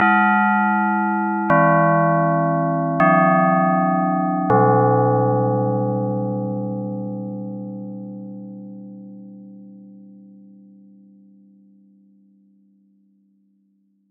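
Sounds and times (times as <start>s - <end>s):
bells ringing: 0.0s - 6.4s.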